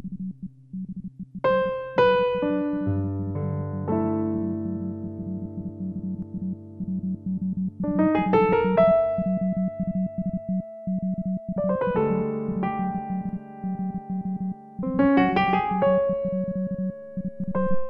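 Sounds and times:
piano: 0:00.0 - 0:17.8.

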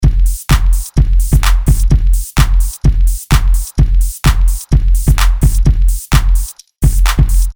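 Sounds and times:
drum: 0:00.0 - 0:07.5.

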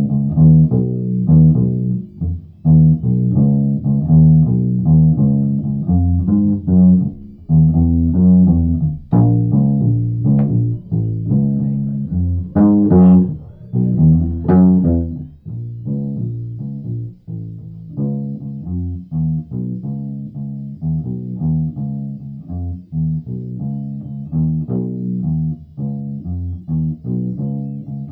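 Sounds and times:
bass song: 0:00.0 - 0:27.5.

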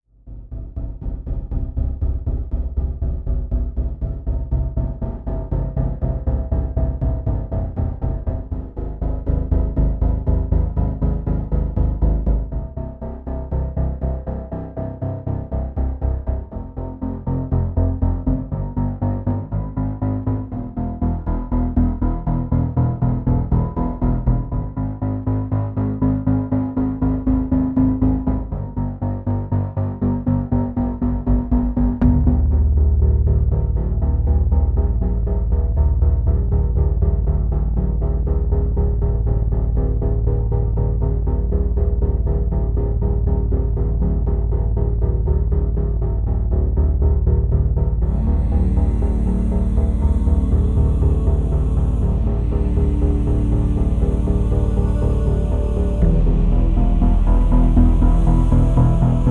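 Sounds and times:
dark building tension deep minimal film trailer music: 0:00.0 - 0:59.2.

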